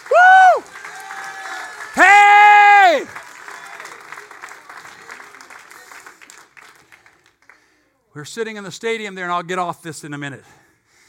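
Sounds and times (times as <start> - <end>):
audience applause, many hands clapping: 0.0 - 7.8
speech: 8.2 - 10.6.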